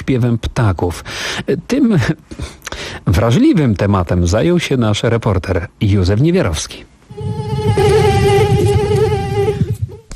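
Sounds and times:
speech: 0.1 - 7.9
mosquito buzzing: 7.1 - 10.1.

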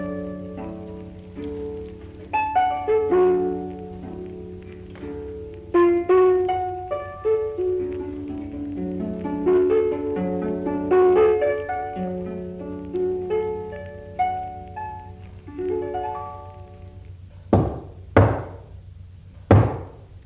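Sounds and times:
melodic ringing plucked tones: 0.0 - 18.4
knocking on a door: 17.5 - 18.7, 19.5 - 20.0.

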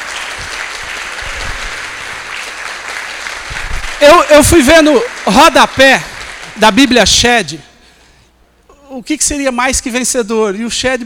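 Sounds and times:
church congregation applause: 0.0 - 7.3
speech: 4.0 - 7.7, 8.9 - 11.0.

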